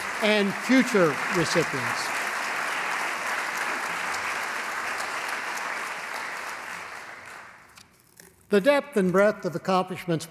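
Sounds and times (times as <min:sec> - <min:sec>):
round of applause: 0:00.0 - 0:07.8
speech: 0:00.2 - 0:02.2, 0:08.5 - 0:10.2.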